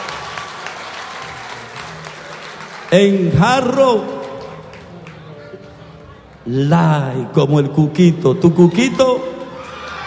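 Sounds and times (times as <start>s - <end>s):
audience applause: 0.0s - 5.3s
speech: 2.9s - 4.2s, 6.5s - 9.4s.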